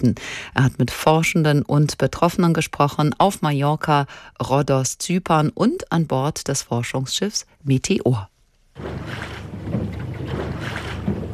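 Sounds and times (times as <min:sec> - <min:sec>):
speech: 0:00.0 - 0:09.9
catamaran gliding over the water: 0:08.8 - 0:11.3.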